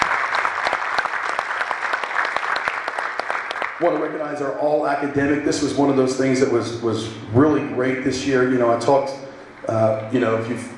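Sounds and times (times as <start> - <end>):
audience applause: 0.0 - 4.1
speech: 3.8 - 10.7.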